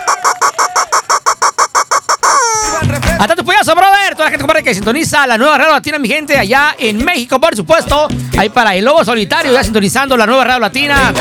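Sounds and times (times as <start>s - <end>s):
rooster sound effect clucking: 0.0s - 3.2s
speech: 4.4s - 11.1s.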